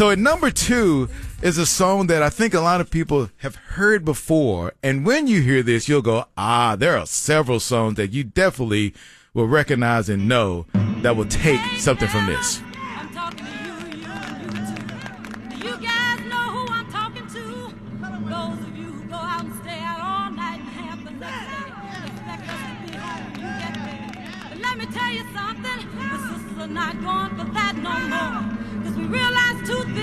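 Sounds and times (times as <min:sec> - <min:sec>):
live concert music: 0:00.0 - 0:03.2, 0:10.1 - 0:30.0
speech: 0:00.0 - 0:12.7
live concert crowd cheering and clapping: 0:11.9 - 0:17.0, 0:21.2 - 0:25.6.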